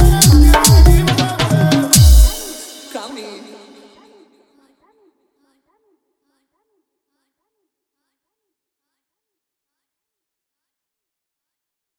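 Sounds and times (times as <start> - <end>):
Hindi DJ remix song with hard dholki: 0.0 - 4.0.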